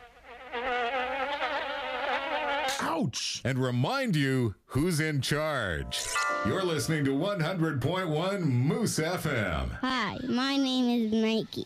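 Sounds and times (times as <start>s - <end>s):
mosquito whining: 0.0s - 2.8s
speech: 2.9s - 11.6s.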